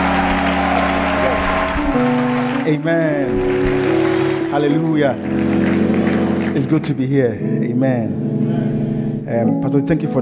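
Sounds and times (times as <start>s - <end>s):
audience clapping: 0.0s - 7.2s
sustained musical tones: 0.0s - 10.1s
speech: 2.0s - 3.8s, 4.6s - 8.2s, 9.3s - 10.1s.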